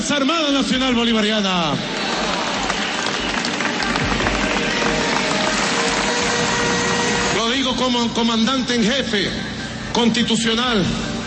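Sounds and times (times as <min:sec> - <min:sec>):
speech: 0:00.0 - 0:02.0, 0:07.5 - 0:11.0
crowd applause: 0:01.7 - 0:07.6.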